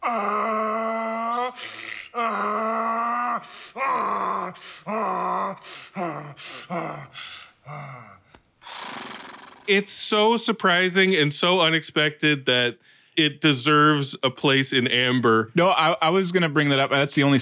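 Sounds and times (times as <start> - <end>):
man imitating donkey bray: 0.0 - 9.8
speech: 9.7 - 17.4.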